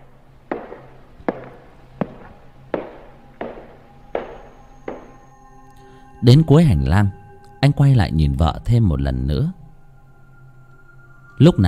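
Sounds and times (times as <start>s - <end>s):
footsteps following behind: 0.5s - 5.2s
speech: 6.2s - 9.6s, 11.4s - 11.6s.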